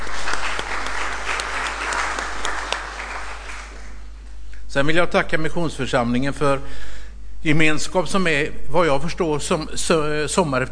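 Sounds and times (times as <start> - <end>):
audience applause: 0.0 - 4.1
speech: 4.7 - 10.7.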